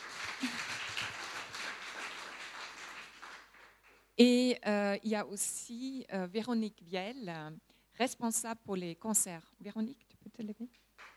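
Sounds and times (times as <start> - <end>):
audience applause: 0.0 - 4.0
speech: 4.2 - 10.8.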